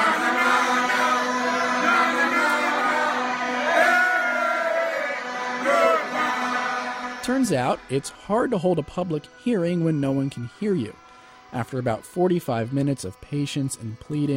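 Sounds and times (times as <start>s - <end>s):
crowd chanting at public hearing: 0.0s - 8.1s
speech: 7.3s - 14.3s.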